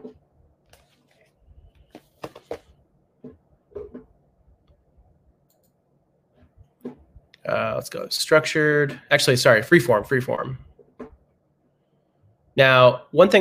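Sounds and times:
computer mouse clicking: 5.5 - 5.8
speech: 7.5 - 10.7, 12.6 - 13.3.

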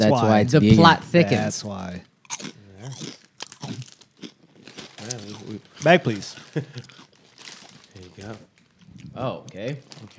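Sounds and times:
speech: 0.0 - 3.1, 5.5 - 6.9, 8.2 - 8.5, 9.2 - 10.1
crunching kettle chips: 2.2 - 10.1.

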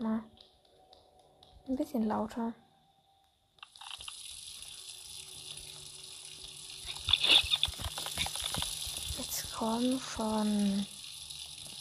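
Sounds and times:
speech: 1.7 - 2.6, 9.7 - 11.0
water running from a tap: 3.6 - 11.7.

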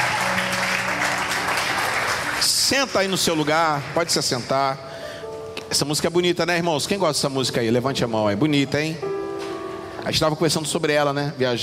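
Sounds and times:
audience applauding: 0.0 - 4.7
speech: 2.7 - 4.9, 5.7 - 9.2, 10.0 - 11.6.

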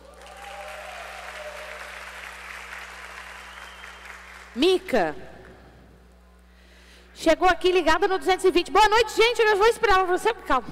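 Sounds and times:
audience applause: 0.0 - 4.6
speech: 4.6 - 5.3, 7.2 - 10.6.

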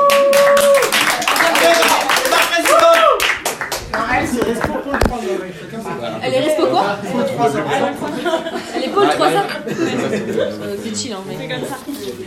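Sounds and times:
audience clapping: 0.0 - 5.1
laughter: 6.8 - 10.8
speech: 9.0 - 12.2.

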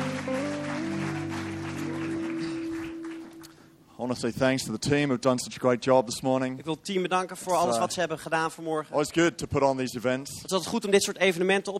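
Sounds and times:
audience applauding the band: 0.0 - 3.7
speech: 4.0 - 11.7.

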